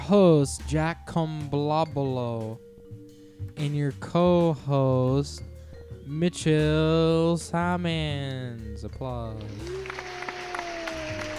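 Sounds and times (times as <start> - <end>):
speech: 0.1 - 2.7, 3.4 - 5.5, 6.1 - 10.0
applause: 9.4 - 11.3.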